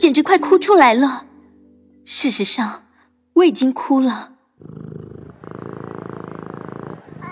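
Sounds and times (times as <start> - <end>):
speech: 0.0 - 1.3, 2.1 - 2.8, 3.4 - 5.0
cat purring: 4.6 - 7.3.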